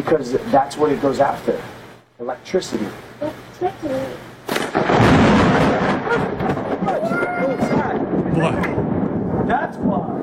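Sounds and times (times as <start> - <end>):
speech: 0.0 - 4.2
thunder crack from lightning strike: 4.5 - 10.2.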